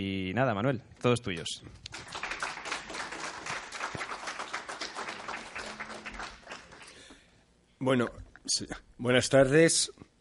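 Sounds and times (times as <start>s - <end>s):
speech: 0.0s - 2.2s, 7.8s - 10.1s
audience applause: 1.9s - 7.1s.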